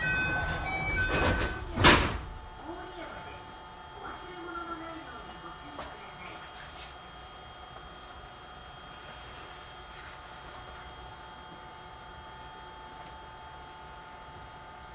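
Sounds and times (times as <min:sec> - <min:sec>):
JR 221 series train running hum: 0:00.0 - 0:05.7.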